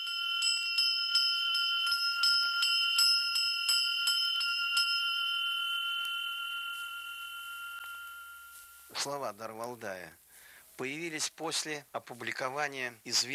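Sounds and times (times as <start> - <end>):
Valdai-type sleigh bell ringing: 0.0 - 9.3
speech: 8.9 - 10.2, 10.8 - 13.3.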